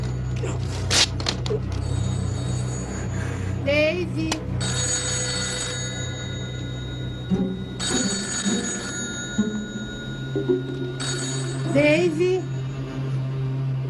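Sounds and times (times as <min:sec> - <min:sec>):
steady low hum: 0:00.0 - 0:13.8
old-style telephone bell ringing: 0:01.8 - 0:03.2, 0:04.6 - 0:13.1
speech: 0:03.6 - 0:04.8.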